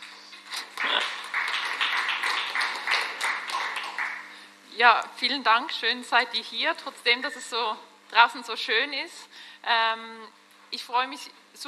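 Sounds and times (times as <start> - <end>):
audience applause: 0.6 - 4.4
speech: 4.8 - 11.6.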